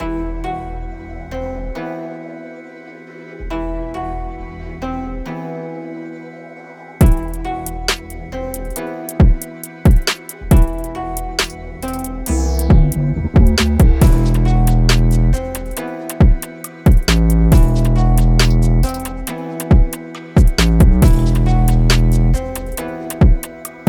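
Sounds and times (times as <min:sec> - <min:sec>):
music beat: 0:07.0 - 0:23.8.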